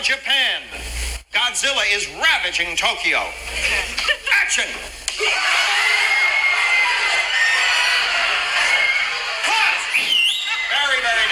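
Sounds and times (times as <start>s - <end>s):
speech: 0.0s - 6.0s
laughter: 3.5s - 11.3s
crowd screaming in mock panic: 5.1s - 11.3s.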